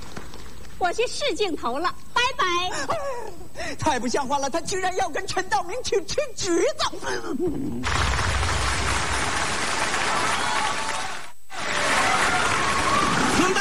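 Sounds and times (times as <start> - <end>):
speech: 0.8 - 8.3
large audience applause: 7.8 - 13.5.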